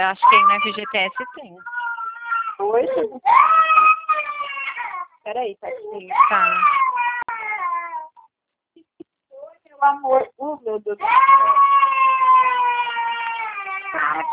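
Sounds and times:
speech: 0.0s - 1.8s, 2.6s - 3.9s, 5.2s - 7.0s, 9.8s - 12.6s
baby crying: 0.2s - 5.2s, 5.8s - 8.2s, 11.0s - 14.3s.

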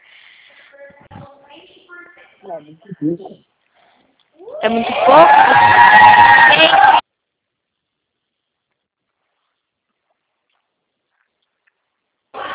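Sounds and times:
speech: 2.4s - 3.5s, 4.6s - 6.8s
people shouting in the background: 4.4s - 7.0s.

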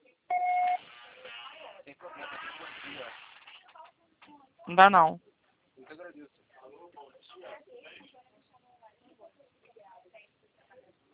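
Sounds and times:
voicemail recording beep tone: 0.3s - 0.8s
speech: 4.7s - 5.3s.

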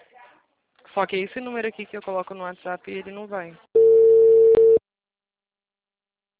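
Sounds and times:
speech: 1.0s - 3.7s
phone ringing tone on a call: 3.8s - 4.8s.

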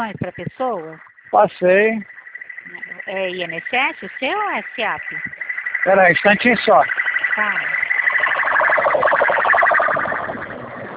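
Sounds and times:
speech: 0.0s - 7.8s
street noise: 0.0s - 10.9s
police car siren on the street: 2.8s - 10.9s.

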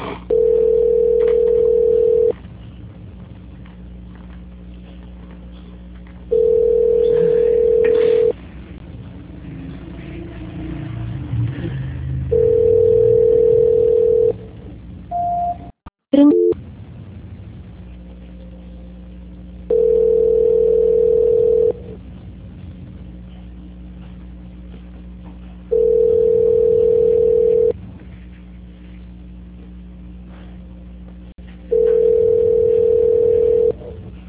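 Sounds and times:
telephone line tone during call transfer: 0.3s - 2.4s, 6.3s - 8.4s, 12.3s - 14.4s, 15.1s - 16.6s, 19.7s - 22.0s, 25.7s - 27.8s, 31.7s - 33.9s.

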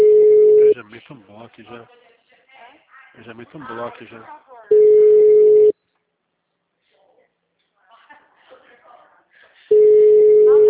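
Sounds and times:
telephone busy signal: 0.0s - 0.8s, 4.7s - 5.7s, 9.7s - 10.6s
speech: 1.0s - 5.0s.

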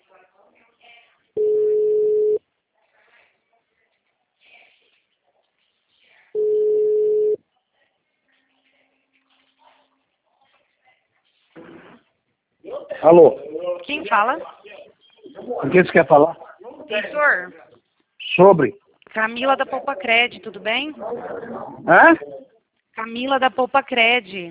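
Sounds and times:
faint scattered noises: 0.0s - 24.4s
outgoing telephone call ringing tone: 1.4s - 2.4s, 6.4s - 7.4s
speech: 13.0s - 14.6s, 15.6s - 17.6s, 18.4s - 22.3s, 23.0s - 24.4s.

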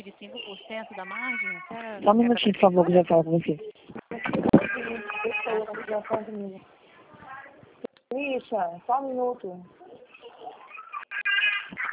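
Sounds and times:
speech: 0.2s - 4.0s, 4.9s - 6.8s, 8.1s - 9.8s
baby crying: 4.5s - 5.7s, 9.9s - 11.9s.

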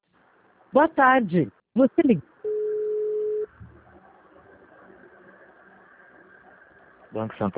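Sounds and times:
speech: 0.7s - 2.3s, 7.1s - 7.5s
busy tone after a dropped phone call: 2.5s - 3.5s
faint low murmur: 3.2s - 7.5s.

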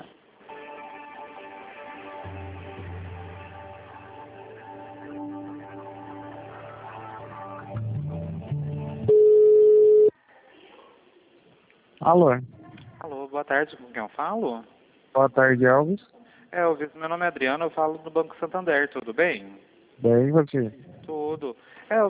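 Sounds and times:
telephone line hold tones: 9.1s - 10.1s
speech: 12.0s - 12.5s, 13.4s - 22.0s.

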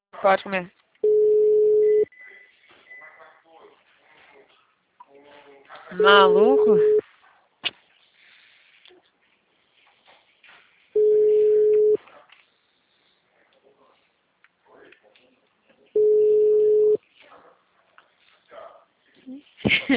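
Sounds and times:
speech: 0.2s - 0.8s, 5.9s - 7.0s
faint sounds: 0.2s - 19.7s
unanswered phone call ringback tones: 1.0s - 2.1s, 6.0s - 7.0s, 11.0s - 12.0s, 16.0s - 17.0s.

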